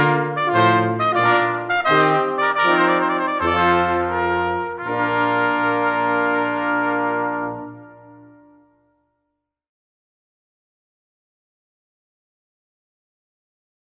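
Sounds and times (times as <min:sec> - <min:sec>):
brass trumpet tune: 0:00.0 - 0:09.1.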